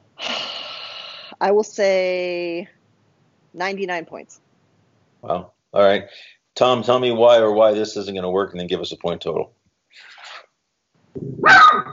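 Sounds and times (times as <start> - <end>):
speech: 1.4 - 2.8, 3.6 - 4.4, 5.2 - 10.1, 11.2 - 11.9
dog barking: 11.4 - 11.9.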